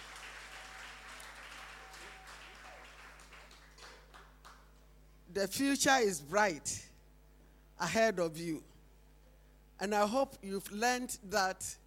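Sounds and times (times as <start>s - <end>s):
audience applause: 0.0s - 4.6s
speech: 5.3s - 6.8s, 7.8s - 8.7s, 9.8s - 11.8s.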